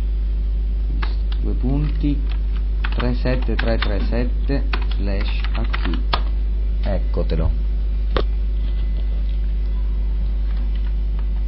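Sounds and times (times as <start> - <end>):
constant low hum: 0.0 - 11.4
speech: 1.5 - 2.4, 3.0 - 6.2, 6.8 - 7.6
typing on a computer keyboard: 1.8 - 6.3.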